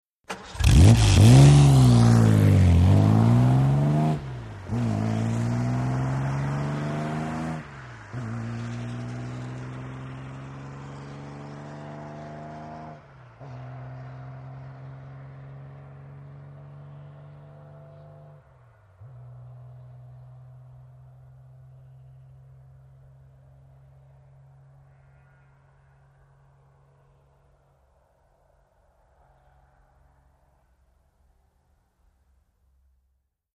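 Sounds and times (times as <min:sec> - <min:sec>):
Aston Martin car starting and departing fast: 0:00.3 - 0:24.7.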